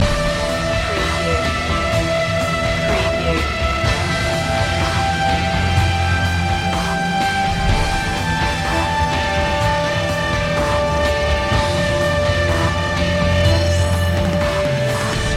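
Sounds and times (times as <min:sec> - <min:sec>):
impending doom music loop: 0:00.0 - 0:15.3.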